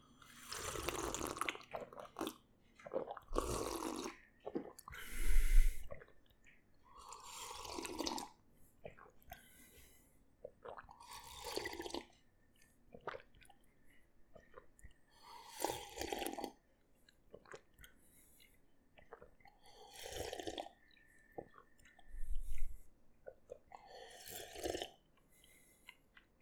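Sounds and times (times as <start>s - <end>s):
person drinking lots of tea: 0.4s - 6.1s, 7.0s - 9.0s, 10.6s - 12.1s, 15.2s - 16.6s, 19.1s - 20.8s, 21.4s - 26.0s.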